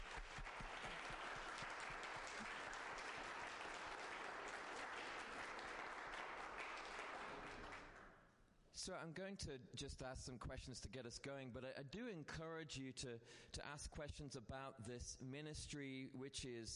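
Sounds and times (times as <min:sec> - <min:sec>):
audience applause: 0:00.0 - 0:08.1
speech: 0:08.8 - 0:16.7.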